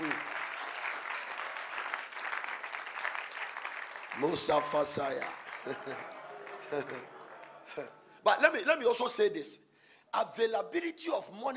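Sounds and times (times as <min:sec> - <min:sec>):
audience clapping: 0:00.0 - 0:08.0
speech: 0:04.2 - 0:11.5
laughter: 0:05.5 - 0:08.0.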